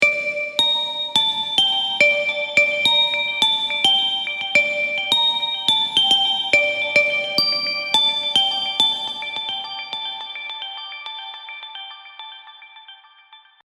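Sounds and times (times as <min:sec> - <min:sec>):
Serum synth plucks: 0:00.0 - 0:09.6.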